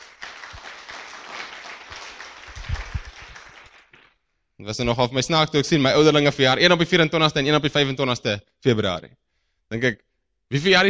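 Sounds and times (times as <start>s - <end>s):
audience clapping hands: 0.0s - 4.2s
speech: 4.6s - 10.8s.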